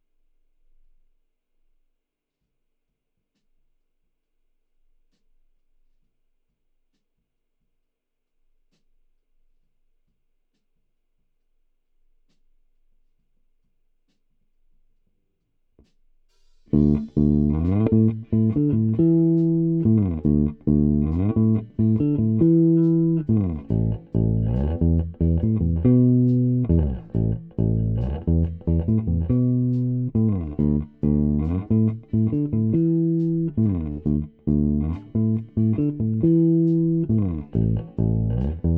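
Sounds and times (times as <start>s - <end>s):
bass sample: 16.7s - 38.7s.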